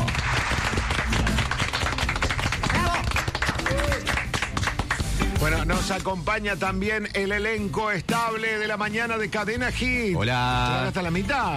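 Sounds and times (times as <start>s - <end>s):
applause: 0.0s - 5.5s
speech: 5.6s - 11.5s.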